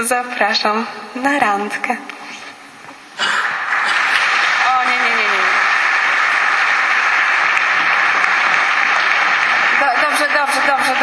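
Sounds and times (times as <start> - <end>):
speech: 0.0 - 2.2
crowd applause: 3.2 - 11.0.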